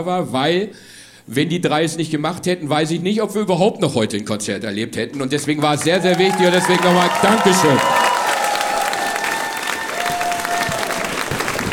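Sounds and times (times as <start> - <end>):
speech: 0.0 - 7.9
audience applause: 5.6 - 11.7.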